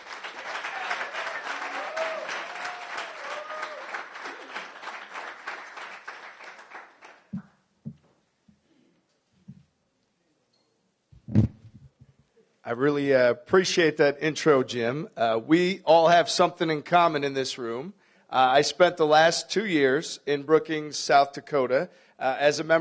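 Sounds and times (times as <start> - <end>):
audience applause at a Las Vegas Rotary Club luncheon: 0.0 - 7.5
speech: 12.7 - 22.7.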